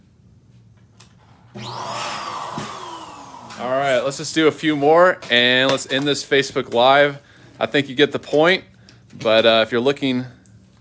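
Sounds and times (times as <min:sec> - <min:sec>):
Leike electric balloon pump running: 0:01.4 - 0:04.2
speech: 0:03.6 - 0:10.4.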